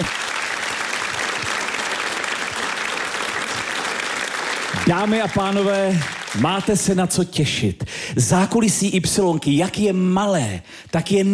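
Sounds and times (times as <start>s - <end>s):
full audience applauding: 0.0s - 7.0s
speech: 4.9s - 11.3s.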